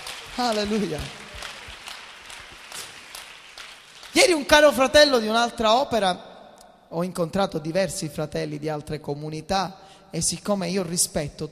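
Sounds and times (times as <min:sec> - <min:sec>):
church congregation clapping: 0:00.0 - 0:05.4
speech: 0:00.4 - 0:01.2, 0:04.2 - 0:06.3, 0:06.9 - 0:11.4.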